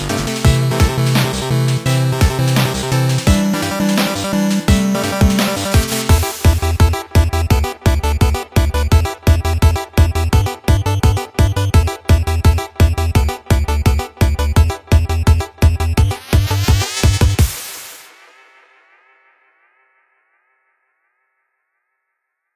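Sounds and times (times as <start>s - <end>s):
8-bit chiptune music: 0.0s - 17.5s.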